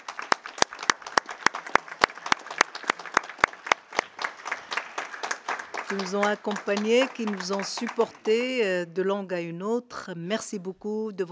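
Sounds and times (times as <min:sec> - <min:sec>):
audience applause: 0:00.0 - 0:08.6
speech: 0:05.9 - 0:11.3.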